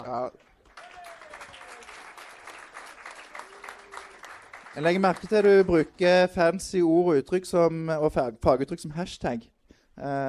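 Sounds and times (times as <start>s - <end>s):
speech: 0.0s - 0.5s, 4.8s - 10.2s
applause: 0.0s - 6.4s.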